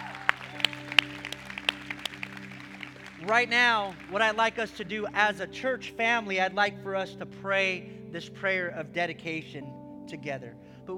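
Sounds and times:
scattered audience handclaps: 0.0 - 4.8
speech: 3.2 - 10.9.

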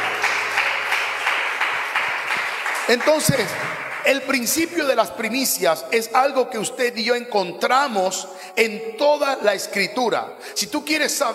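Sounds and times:
audience applause: 0.0 - 4.6
speech: 2.9 - 11.3.

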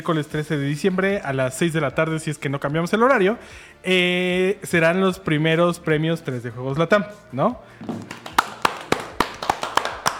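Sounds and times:
speech: 0.0 - 8.2
person clapping hands: 7.8 - 10.1.

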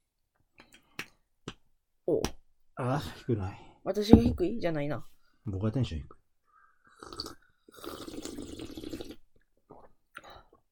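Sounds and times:
speech: 2.1 - 6.2
slurping a sweet drink while taking in air: 6.9 - 9.2.

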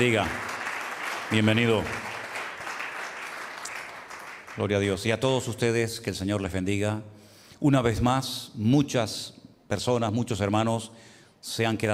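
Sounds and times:
speech: 0.0 - 0.5, 1.3 - 2.2, 4.6 - 11.9
welcome applause: 0.0 - 4.7.

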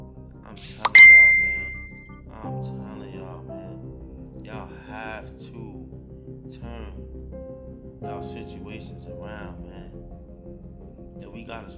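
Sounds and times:
phone notification chime: 0.9 - 2.0
speech: 6.5 - 11.7.

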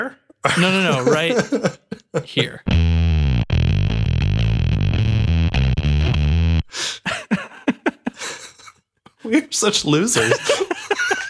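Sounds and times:
speech: 0.0 - 2.9, 9.6 - 10.7
laughter: 0.4 - 2.6, 7.0 - 8.8, 10.1 - 11.2
bass guitar through distortion pedal at max gain: 2.6 - 6.7.

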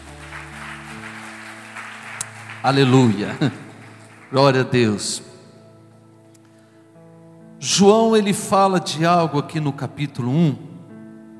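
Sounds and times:
round of applause: 0.0 - 5.0
speech: 2.6 - 3.6, 4.3 - 5.3, 7.6 - 10.7.

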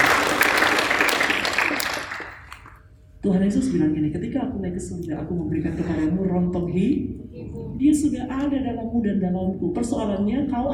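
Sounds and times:
applause: 0.0 - 2.8
speech: 3.2 - 10.7.

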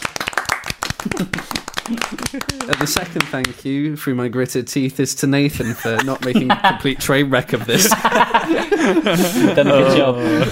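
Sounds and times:
round of applause, hands clapping: 0.0 - 3.6
laughter: 1.0 - 3.3, 5.5 - 10.5
speech: 1.0 - 10.5.

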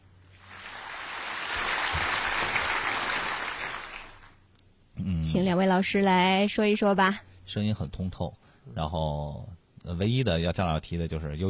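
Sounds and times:
applause: 0.4 - 4.4
speech: 5.2 - 11.4.

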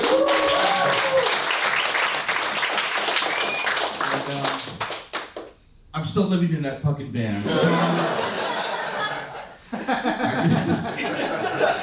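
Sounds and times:
brief tonal cheer: 0.0 - 1.6
audience applause and clapping: 0.0 - 5.5
speech: 6.2 - 8.4, 9.9 - 11.8
laughter: 7.3 - 11.8.

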